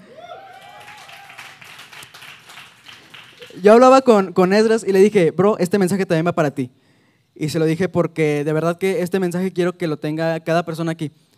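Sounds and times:
audience applause: 0:00.0 - 0:03.7
speech: 0:03.6 - 0:11.3.

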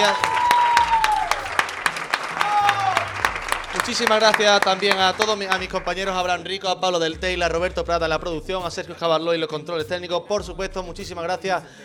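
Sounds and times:
speech: 0:00.0 - 0:00.4, 0:03.9 - 0:11.8
audience applause: 0:00.0 - 0:06.2.

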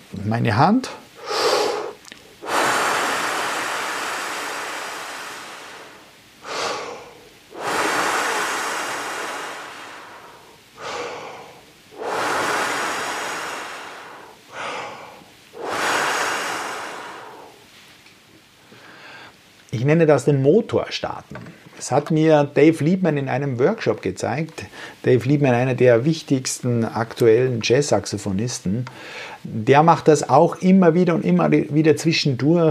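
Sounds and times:
speech: 0:00.2 - 0:01.0, 0:19.9 - 0:32.6
long forceful exhaled breath puffs: 0:01.2 - 0:17.8.

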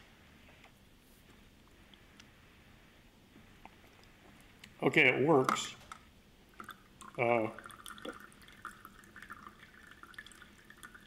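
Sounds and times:
speech: 0:04.8 - 0:05.8, 0:07.2 - 0:08.2
water dripping out of a LifeStraw filter: 0:06.5 - 0:11.0.

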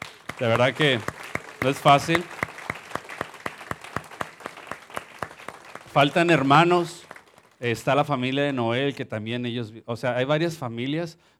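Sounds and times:
audience applause: 0:00.0 - 0:07.6
speech: 0:00.4 - 0:02.4, 0:06.0 - 0:07.0, 0:07.6 - 0:11.3.

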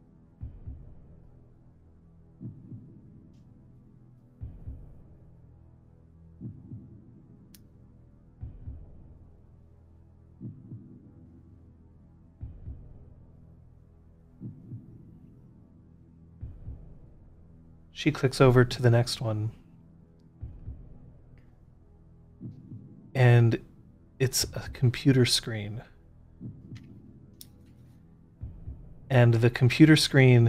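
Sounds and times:
rabbit's heartbeat picked up by a sensor on its shaved chest: 0:00.4 - 0:01.2, 0:02.4 - 0:03.3, 0:04.4 - 0:05.3, 0:06.4 - 0:07.3, 0:08.4 - 0:09.4, 0:10.4 - 0:11.4, 0:12.4 - 0:13.2, 0:14.4 - 0:15.4, 0:16.4 - 0:17.4, 0:20.4 - 0:21.3, 0:22.4 - 0:23.7, 0:26.3 - 0:27.3, 0:28.4 - 0:30.4
speech: 0:18.0 - 0:19.6, 0:24.3 - 0:25.9, 0:29.1 - 0:30.4.

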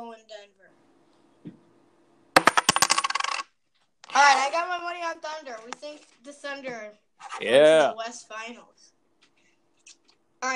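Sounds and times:
quarter coin tossed and landing: 0:02.4 - 0:03.5
speech: 0:04.2 - 0:08.9.

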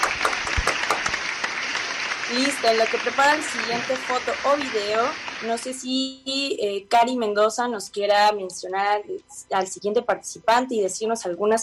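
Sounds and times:
audience applause: 0:00.0 - 0:05.6
speech: 0:02.3 - 0:11.6.

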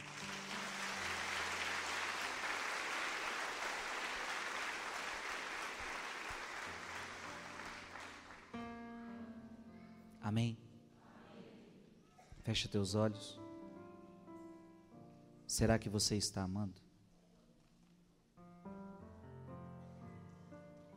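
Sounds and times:
audience applauding: 0:00.0 - 0:08.6
speech: 0:10.3 - 0:10.6, 0:12.4 - 0:13.4, 0:15.6 - 0:16.9.

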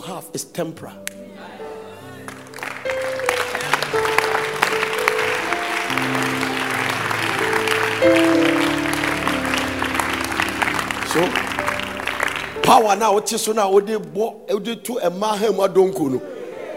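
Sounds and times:
speech: 0:00.1 - 0:01.5, 0:11.1 - 0:11.4, 0:12.7 - 0:16.3
low sustained musical tones: 0:01.0 - 0:14.2
audience clapping: 0:02.2 - 0:13.2.

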